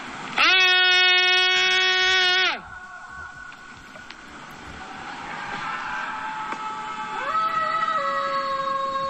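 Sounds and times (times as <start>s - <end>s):
students screaming and yelling out of windows at night: 0.4s - 9.0s
wailing cries: 0.4s - 9.0s.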